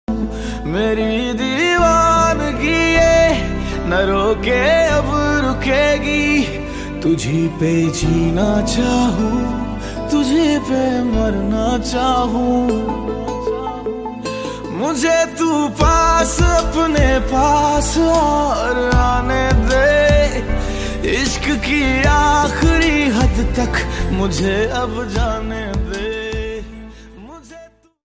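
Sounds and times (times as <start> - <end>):
romantic song ringtone: 0.1 - 28.0.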